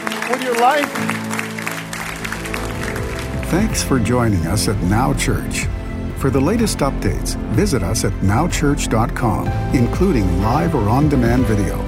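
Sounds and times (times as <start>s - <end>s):
audience hand clapping: 0.0s - 4.4s
speech: 0.3s - 1.4s, 3.5s - 11.8s.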